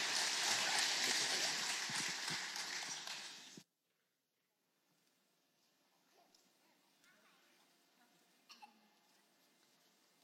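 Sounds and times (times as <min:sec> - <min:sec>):
audience applause: 0:00.0 - 0:03.6.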